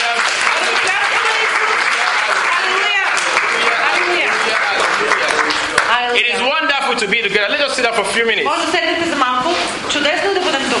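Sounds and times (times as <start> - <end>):
audience clapping: 0.0 - 6.8
speech: 6.9 - 10.7.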